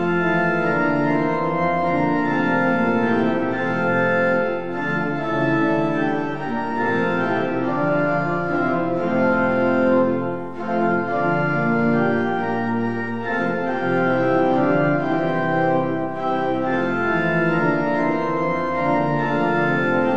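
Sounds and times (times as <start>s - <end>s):
organ playing a hymn: 0.0s - 20.1s.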